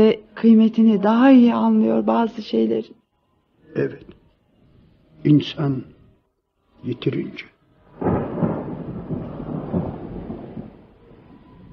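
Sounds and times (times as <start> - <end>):
speech: 0.0 - 3.0, 3.7 - 4.2, 5.2 - 5.9, 6.8 - 7.5
rain: 7.9 - 11.7
thunder: 7.9 - 11.7.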